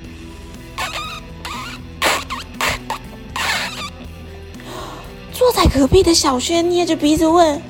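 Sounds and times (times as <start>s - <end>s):
fart: 0.8s - 3.9s
speech: 5.8s - 7.6s.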